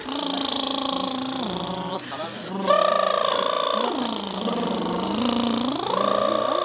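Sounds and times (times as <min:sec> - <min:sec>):
lip trill vocal warm-up: 0:00.0 - 0:06.6.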